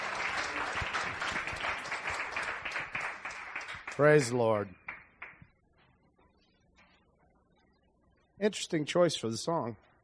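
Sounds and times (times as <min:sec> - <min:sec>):
audience cheering: 0:00.0 - 0:03.2
audience applause: 0:00.0 - 0:04.5
speech: 0:04.0 - 0:04.8, 0:08.4 - 0:09.9.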